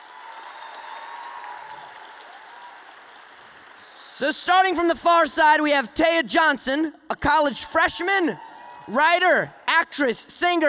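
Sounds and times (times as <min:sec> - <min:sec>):
audience applause: 0:00.0 - 0:04.1
speech: 0:04.2 - 0:10.6.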